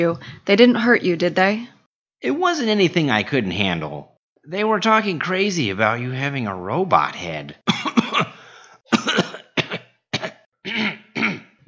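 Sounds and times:
speech: 0:00.0 - 0:07.8
father clearing his throat: 0:07.7 - 0:11.6
father coughing harshly from something caught in his throat: 0:07.7 - 0:11.6.

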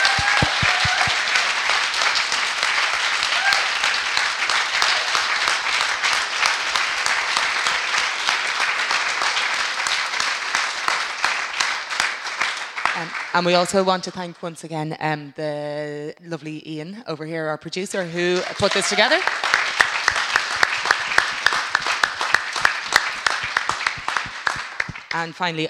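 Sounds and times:
audience round of applause: 0:00.0 - 0:13.4, 0:18.3 - 0:25.2
speech: 0:13.4 - 0:19.4, 0:25.2 - 0:25.6.

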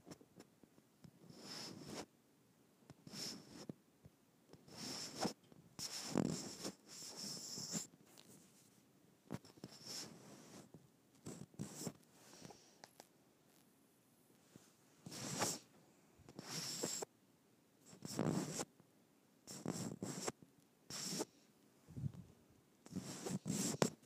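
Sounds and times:
microphone rubbed against skin: 0:01.3 - 0:02.1, 0:03.1 - 0:03.7, 0:04.7 - 0:10.7, 0:11.3 - 0:12.7, 0:14.5 - 0:15.7, 0:16.3 - 0:17.1, 0:17.9 - 0:18.7, 0:19.5 - 0:21.3, 0:22.9 - 0:24.0.

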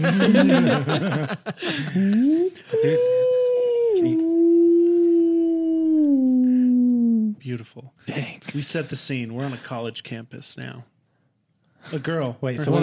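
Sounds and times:
laughter: 0:00.0 - 0:03.3
speech: 0:00.0 - 0:03.3, 0:04.0 - 0:04.2, 0:07.4 - 0:10.9, 0:11.8 - 0:12.8
person imitating owl hooting: 0:02.2 - 0:07.5.

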